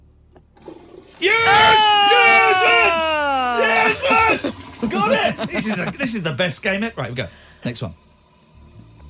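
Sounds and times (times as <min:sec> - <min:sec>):
toilet flushing: 0:00.5 - 0:09.0
person shouting excitedly: 0:01.2 - 0:05.5
laughter: 0:02.1 - 0:06.4
speech: 0:04.8 - 0:08.1.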